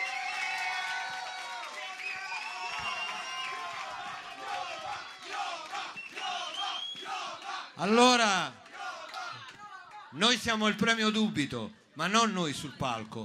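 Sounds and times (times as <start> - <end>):
audience cheering with whoops and shouting voices: 0.0 - 7.3
large audience applauding: 0.0 - 10.0
speech: 7.8 - 8.6, 10.2 - 13.2.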